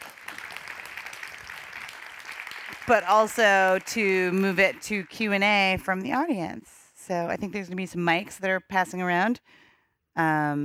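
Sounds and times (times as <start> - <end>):
audience clapping: 0.0 - 6.2
speech: 2.8 - 9.6, 10.2 - 10.6.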